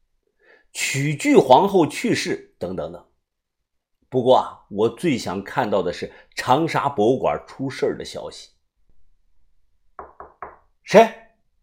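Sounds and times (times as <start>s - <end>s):
speech: 0.7s - 3.1s, 4.1s - 8.5s, 10.9s - 11.2s
knocking on a door: 10.0s - 10.7s.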